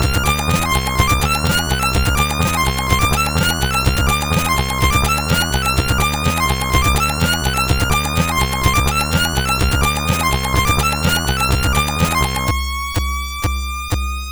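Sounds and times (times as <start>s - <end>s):
techno style music on a CSG8580R5 sound chip: 0.0s - 14.2s.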